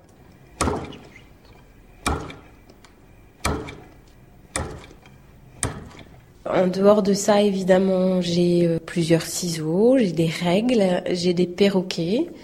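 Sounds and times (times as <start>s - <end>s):
lever hole-punch press punching holes in metal: 0.6s - 6.2s
speech: 6.5s - 12.4s.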